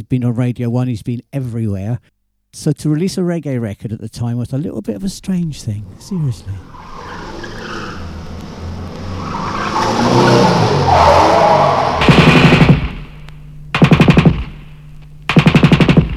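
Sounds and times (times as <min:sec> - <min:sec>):
speech: 0:00.0 - 0:07.0
car skidding: 0:05.1 - 0:13.2
machine gun fire said to be Al Capone's gun: 0:12.0 - 0:16.1.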